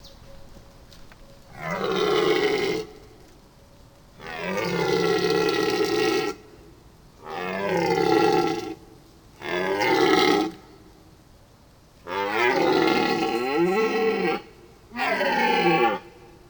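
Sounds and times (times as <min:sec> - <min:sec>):
red deer roaring in a forest during the mating season: 0:01.5 - 0:03.2, 0:04.2 - 0:06.4, 0:07.2 - 0:08.8, 0:09.4 - 0:10.6, 0:12.1 - 0:16.4.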